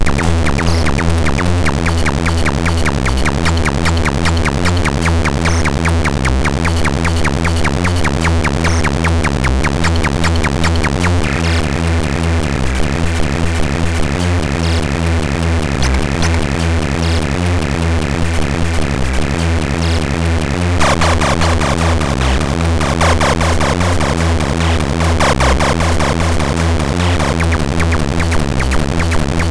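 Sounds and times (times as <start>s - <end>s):
MOS6581R3 chiptune techno music: 0.0s - 29.4s.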